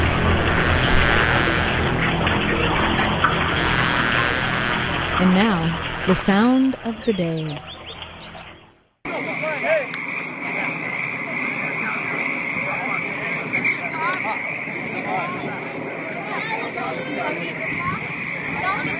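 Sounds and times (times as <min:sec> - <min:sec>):
chorus of frogs trilling: 0:00.7 - 0:18.9
speech: 0:05.2 - 0:07.7
youth rugby players shouting: 0:09.1 - 0:18.9.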